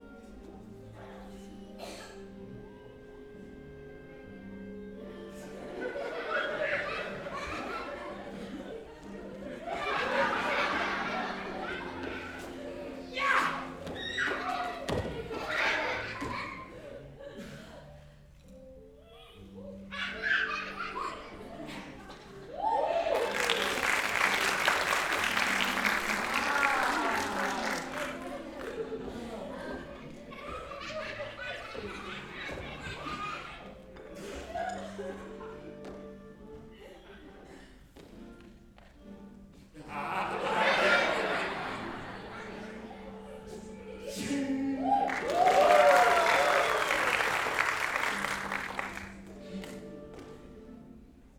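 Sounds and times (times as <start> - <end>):
music at a clown performance: 0.0 - 51.3
children laughing: 5.4 - 18.0, 19.2 - 35.8, 39.8 - 43.7, 44.8 - 49.2
applause: 23.1 - 28.9, 45.1 - 49.3.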